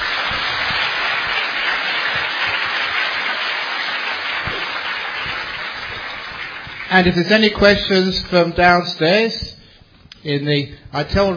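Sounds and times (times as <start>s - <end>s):
large audience applauding: 0.0s - 7.9s
speech: 6.9s - 9.6s, 10.2s - 11.3s.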